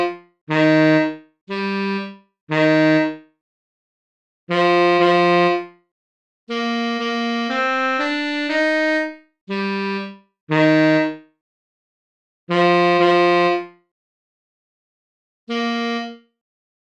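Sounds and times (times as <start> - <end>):
tenor saxophone: 0.0 - 3.2, 4.5 - 5.8, 6.5 - 11.3, 12.5 - 13.8, 15.5 - 16.3.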